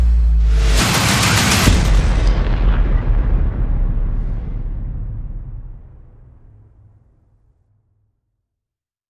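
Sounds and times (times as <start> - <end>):
percussion: 0.0 - 4.8
sound effects: 0.0 - 6.7.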